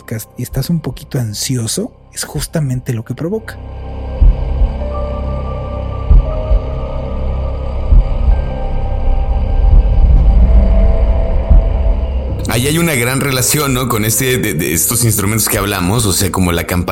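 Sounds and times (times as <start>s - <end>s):
speech: 0.1s - 3.9s, 12.6s - 16.9s
low-frequency drone: 3.6s - 14.8s
soft thumping pulses: 4.2s - 4.9s, 6.0s - 7.0s, 7.8s - 12.4s.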